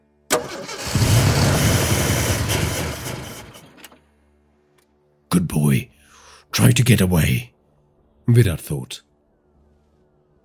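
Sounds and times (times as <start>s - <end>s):
vehicle engine cranking, catching and roaring: 0.3s - 4.0s
speech: 5.4s - 5.9s, 6.5s - 7.5s, 8.3s - 9.1s.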